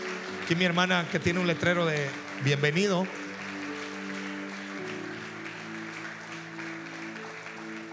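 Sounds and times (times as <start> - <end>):
audience applauding: 0.0 - 7.9
speech: 0.5 - 3.2.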